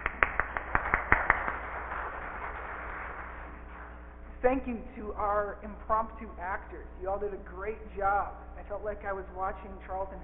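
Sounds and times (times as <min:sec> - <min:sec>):
applause: 0:00.0 - 0:04.0
speech: 0:04.4 - 0:10.2.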